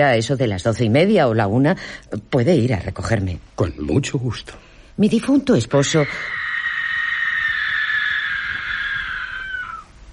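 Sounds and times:
speech: 0.0 - 6.4
horrible scream: 5.8 - 10.0.

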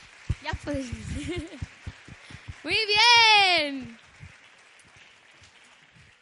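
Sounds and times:
crowd applauding: 0.0 - 6.1
speech: 0.5 - 1.7, 2.6 - 4.0
laughter: 0.8 - 1.6.

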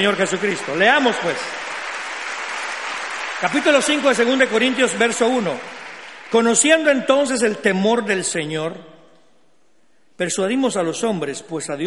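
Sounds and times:
speech: 0.0 - 1.7, 3.4 - 9.0, 10.2 - 11.8
loud audience applause: 0.0 - 6.9.

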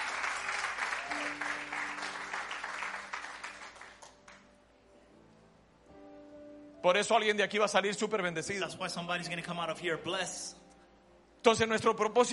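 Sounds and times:
congregation applause during a bilingual church service: 0.0 - 4.4
speech: 6.8 - 10.6, 11.4 - 12.3.

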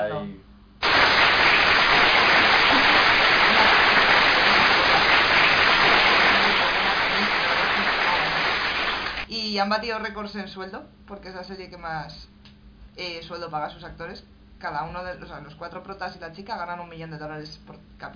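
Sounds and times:
crowd applause: 0.8 - 9.3
speech: 9.6 - 12.4, 13.0 - 18.1.

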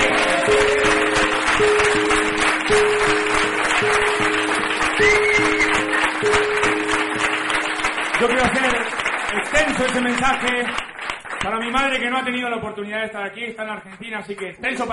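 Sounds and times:
simple melody of held musical notes: 0.0 - 8.6
audience clapping: 0.0 - 12.6
speech: 9.6 - 10.8, 11.6 - 14.9.

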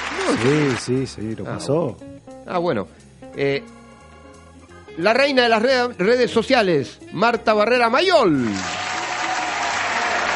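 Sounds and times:
audience applause: 0.0 - 1.0, 8.4 - 10.3
speech: 0.3 - 3.8, 5.0 - 8.8.

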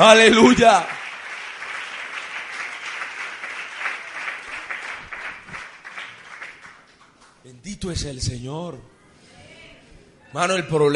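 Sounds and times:
speech: 0.0 - 1.0, 7.6 - 8.9, 10.3 - 10.9
loud applause from audience: 0.0 - 7.4.

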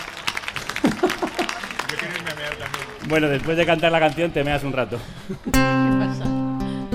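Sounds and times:
audience applause: 0.0 - 5.0
laughter: 0.7 - 2.6, 4.9 - 6.8
speech: 1.9 - 6.3.

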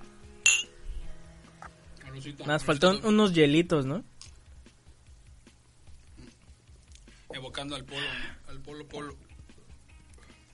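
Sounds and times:
glasses clinking in a toast: 0.5 - 0.7
speech: 2.2 - 4.1, 7.6 - 9.3.

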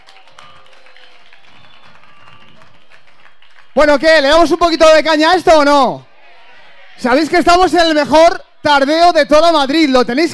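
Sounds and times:
audience applause: 0.0 - 4.9
speech: 3.8 - 6.1, 7.0 - 10.3.

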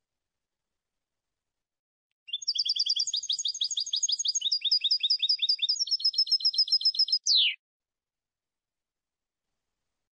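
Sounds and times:
European goldfinch trills: 2.3 - 7.6.

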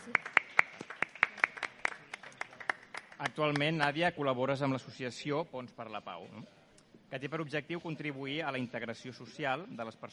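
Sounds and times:
applause: 0.0 - 3.8
speech: 3.3 - 10.1.

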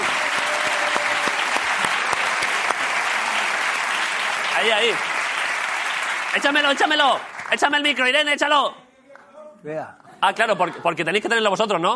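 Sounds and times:
audience applauding a guest: 0.0 - 8.2
speech: 4.6 - 5.1, 6.3 - 8.8, 9.6 - 11.9.

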